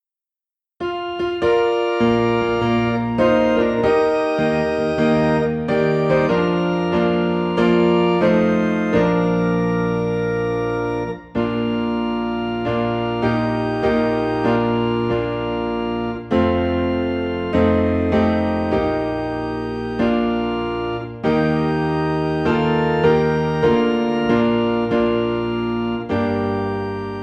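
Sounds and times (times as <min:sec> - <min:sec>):
organ in B flat: 0:00.8 - 0:27.2
piano in B flat: 0:00.8 - 0:27.2.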